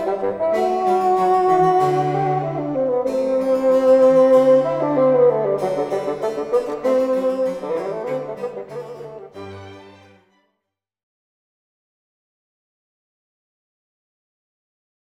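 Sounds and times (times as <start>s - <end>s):
bassoon: 0.0s - 10.3s.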